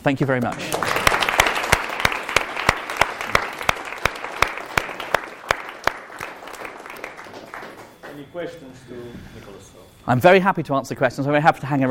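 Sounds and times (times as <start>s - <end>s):
speech: 0.0s - 0.8s, 8.4s - 11.8s
audience applause: 0.5s - 8.3s.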